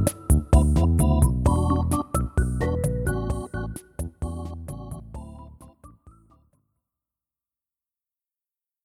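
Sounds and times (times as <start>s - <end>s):
supermarket organ music: 0.0s - 6.4s.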